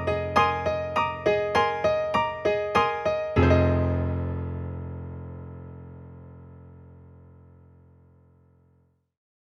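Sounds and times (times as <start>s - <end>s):
rock piano playing: 0.0s - 7.9s.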